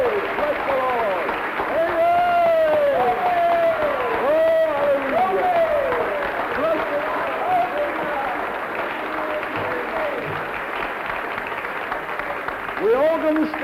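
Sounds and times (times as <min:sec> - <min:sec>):
high voices whooping and cheering: 0:00.0 - 0:10.4
audience clapping: 0:00.0 - 0:13.6.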